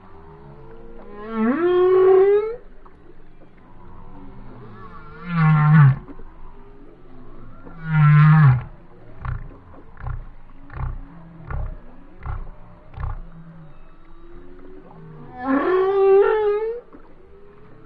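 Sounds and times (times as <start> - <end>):
whale moaning: 0.0 - 17.8
whale grunts: 7.9 - 13.4.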